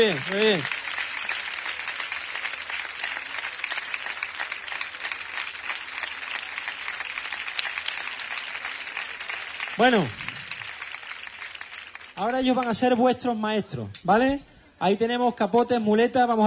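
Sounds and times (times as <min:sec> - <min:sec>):
speech: 0:00.0 - 0:00.8, 0:09.8 - 0:10.2, 0:12.2 - 0:16.4
crowd applause for the bullfighters: 0:00.0 - 0:12.7.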